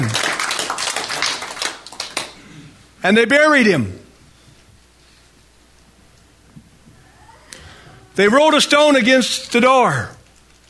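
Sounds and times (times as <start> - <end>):
audience applauding: 0.0 - 2.4
speech: 3.0 - 4.0, 8.2 - 10.2.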